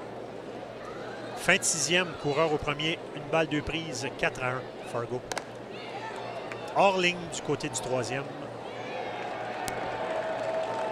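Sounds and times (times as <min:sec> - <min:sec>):
speech: 0:01.4 - 0:05.4, 0:06.8 - 0:08.4
ballpark crowd applause at baseball game: 0:09.2 - 0:10.9.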